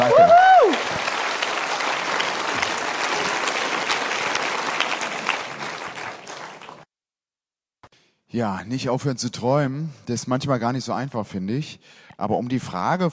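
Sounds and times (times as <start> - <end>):
audience applause: 0.0 - 6.8
speech: 8.4 - 13.1.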